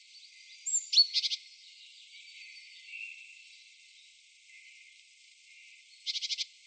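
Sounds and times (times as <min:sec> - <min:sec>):
Parus major calling: 0:00.6 - 0:01.4, 0:06.0 - 0:06.4.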